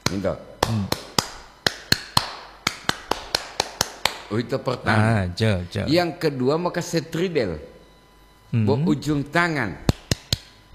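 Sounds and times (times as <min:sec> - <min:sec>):
scout rhythmic hand clapping pattern: 0:00.0 - 0:04.3, 0:09.8 - 0:10.7
speech: 0:00.1 - 0:01.0, 0:04.3 - 0:07.7, 0:08.5 - 0:09.9.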